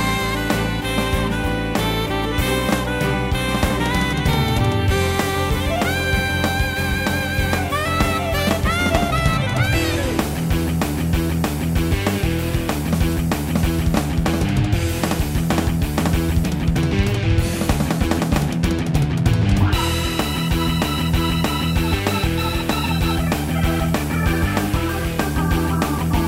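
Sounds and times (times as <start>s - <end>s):
saxophone: 0.0s - 10.8s, 19.7s - 26.2s
guitar: 0.0s - 26.2s.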